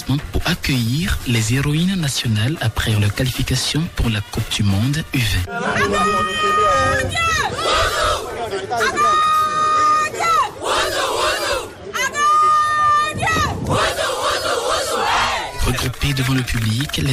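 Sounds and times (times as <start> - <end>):
speech: 0.1 - 9.4, 16.1 - 17.1
women's U20 football team chanting a war cry: 5.5 - 15.6
supporters cheering: 5.5 - 17.1.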